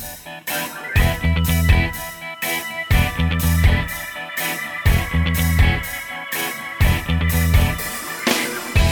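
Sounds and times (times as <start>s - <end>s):
Bulgarian singing: 0.5s - 8.8s.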